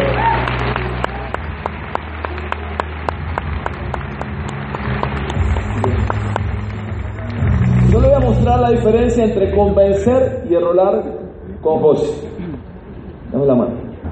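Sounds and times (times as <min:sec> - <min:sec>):
audience applause: 0:00.0 - 0:10.0
speech: 0:08.7 - 0:12.3, 0:13.3 - 0:13.8.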